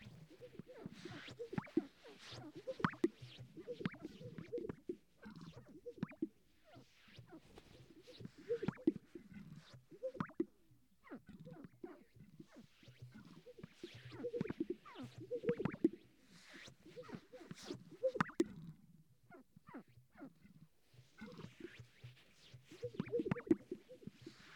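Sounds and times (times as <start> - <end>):
sage-grouse display chorus of gulping pops and airy swishes: 0.0 - 11.2, 11.8 - 18.5, 20.9 - 24.5.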